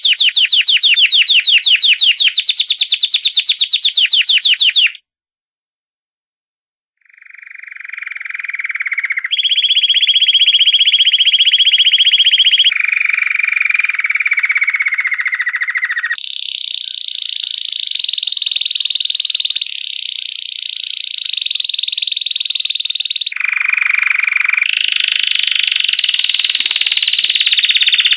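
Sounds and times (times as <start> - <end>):
canary singing sustained rolling trills: 0.0 - 5.0, 7.5 - 20.0, 20.8 - 28.1.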